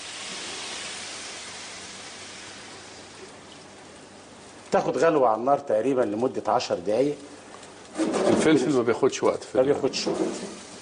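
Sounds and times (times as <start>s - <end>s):
water poured into a cooking pot: 0.0s - 3.5s
speech: 4.7s - 10.7s.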